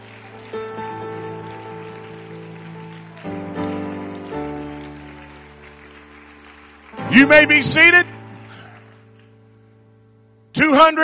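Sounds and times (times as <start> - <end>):
audience clapping hands: 0.0 - 9.6
speech: 7.1 - 8.1, 10.9 - 11.0.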